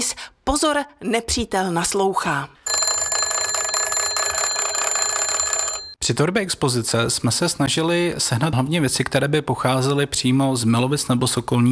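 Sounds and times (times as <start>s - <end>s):
speech: 0.0s - 2.6s, 6.1s - 11.7s
old bakelite crank telephone ringing: 2.6s - 6.0s.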